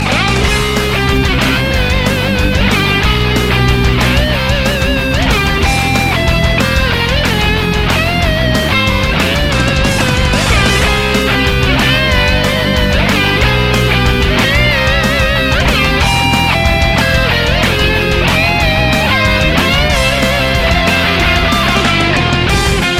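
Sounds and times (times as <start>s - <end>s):
birthday song in rock style: 0.0s - 22.9s.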